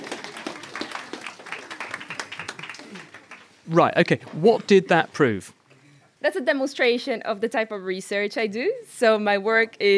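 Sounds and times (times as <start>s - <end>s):
group applause: 0.0s - 4.2s
speech: 3.7s - 5.6s, 6.2s - 9.9s.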